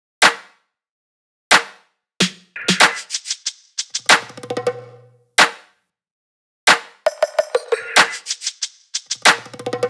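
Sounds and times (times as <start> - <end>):
pop drum top loop: 2.2 - 5.5, 7.1 - 9.8.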